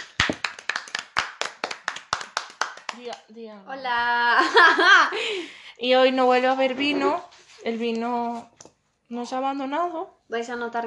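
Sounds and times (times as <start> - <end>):
hand claps: 0.0 - 3.3
speech: 3.0 - 8.5, 9.1 - 10.8
laughter: 4.4 - 5.4.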